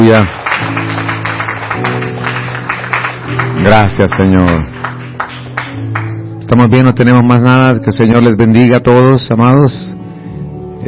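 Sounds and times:
speech: 0.0s - 0.4s, 1.8s - 2.4s, 3.3s - 4.8s, 6.5s - 10.0s
crowd clapping: 0.0s - 6.4s.

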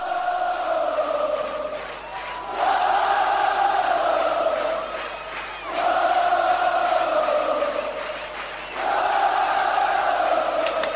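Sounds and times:
concert crowd roaring and chanting: 0.0s - 10.9s.

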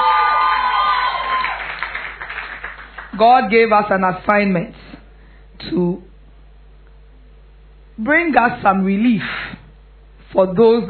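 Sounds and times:
audience clapping: 0.0s - 3.2s
speech: 3.2s - 4.8s, 5.6s - 6.1s, 8.0s - 9.4s, 10.3s - 10.8s.

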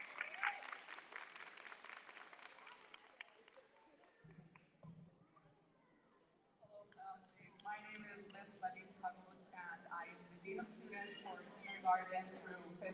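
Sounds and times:
audience applause: 0.0s - 3.6s
speech: 8.2s - 12.9s.

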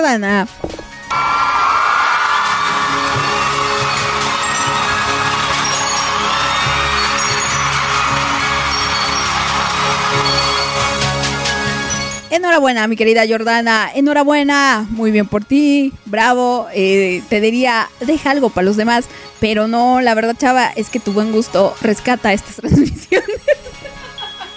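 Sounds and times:
speech: 0.0s - 0.7s, 12.3s - 23.7s
audience applauding: 1.1s - 12.0s
laughter: 22.6s - 24.5s.

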